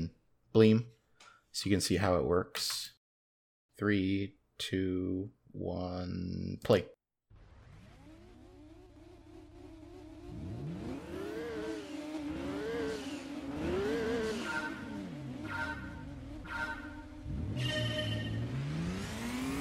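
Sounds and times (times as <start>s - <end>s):
speech: 0.6s - 1.0s, 1.6s - 2.9s, 3.8s - 7.0s
racing video game car engine roaring: 7.3s - 19.5s.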